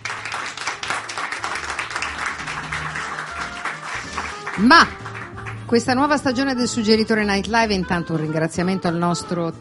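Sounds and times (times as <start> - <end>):
audience applause: 0.0 - 5.7
speech: 4.6 - 5.0, 5.7 - 9.6.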